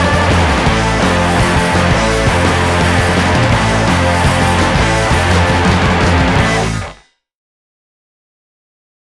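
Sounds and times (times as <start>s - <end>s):
action beat: 0.0s - 7.1s.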